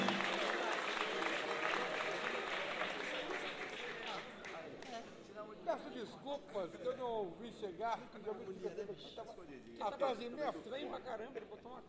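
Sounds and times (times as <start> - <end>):
audience applause: 0.0 - 4.6
speech: 6.0 - 11.8.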